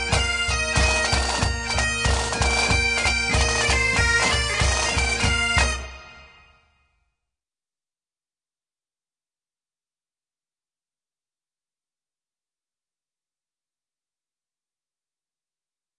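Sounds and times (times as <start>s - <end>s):
bagpipes: 0.0s - 6.7s.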